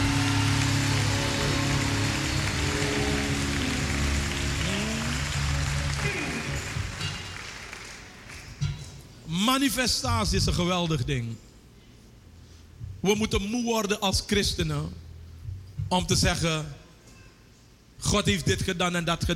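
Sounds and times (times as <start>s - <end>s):
loud applause from a large crowd: 0.0s - 8.6s
held musical chords: 0.0s - 8.9s
speech: 9.5s - 11.5s, 13.0s - 15.0s, 15.9s - 16.8s, 18.0s - 19.3s.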